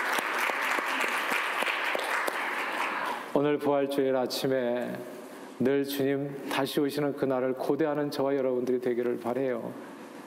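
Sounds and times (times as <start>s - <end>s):
audience applause: 0.0s - 3.3s
speech: 3.4s - 9.9s.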